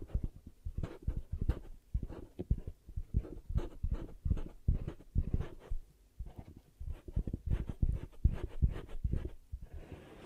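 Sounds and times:
ear cupping thumps: 0:00.0 - 0:09.6.

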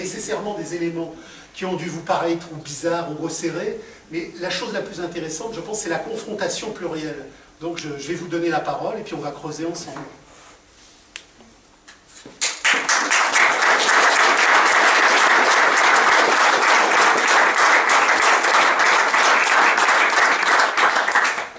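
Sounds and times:
speech: 0:00.3 - 0:10.2
audience applause: 0:12.4 - 0:21.5.

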